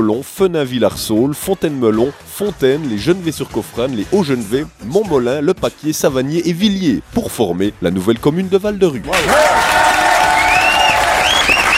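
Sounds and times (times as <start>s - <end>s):
speech: 0.0s - 9.6s
audience applause: 9.1s - 11.7s.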